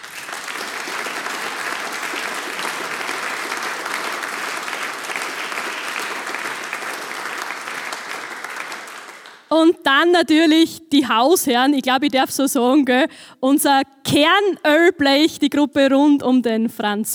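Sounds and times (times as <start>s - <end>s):
audience applause: 0.0s - 9.5s
speech: 9.5s - 17.1s.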